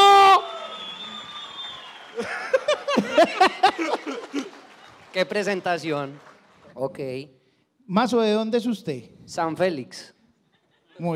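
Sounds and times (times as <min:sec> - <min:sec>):
audience applause: 0:00.0 - 0:06.9
laughter: 0:02.2 - 0:05.0, 0:10.4 - 0:11.1
speech: 0:05.2 - 0:10.2, 0:11.0 - 0:11.1.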